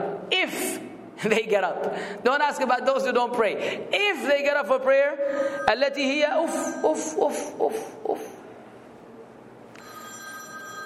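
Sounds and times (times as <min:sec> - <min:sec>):
low hum: 0:00.0 - 0:10.8
speech: 0:01.2 - 0:08.3
iPhone ringing during a tafsir class: 0:05.4 - 0:07.2, 0:09.8 - 0:10.8.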